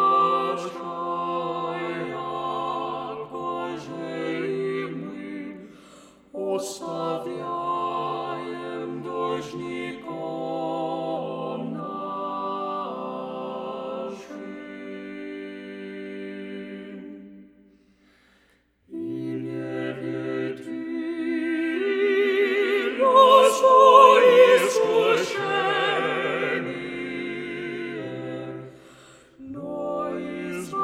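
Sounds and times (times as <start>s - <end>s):
vocal group singing a prayer without tenor: 0.0s - 30.8s.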